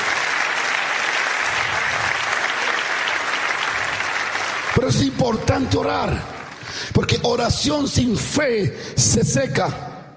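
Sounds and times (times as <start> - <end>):
audience applause: 0.0 - 6.9
speech: 4.8 - 9.9.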